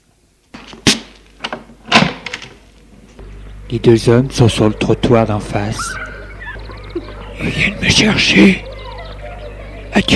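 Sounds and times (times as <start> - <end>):
door opening: 0.6 - 2.6
speech: 3.7 - 6.0, 7.4 - 8.6, 10.0 - 10.1
laughter: 4.7 - 10.1.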